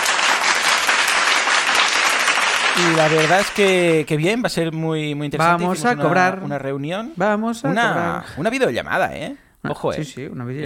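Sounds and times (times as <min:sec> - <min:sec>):
applause: 0:00.0 - 0:04.1
speech: 0:02.8 - 0:10.6.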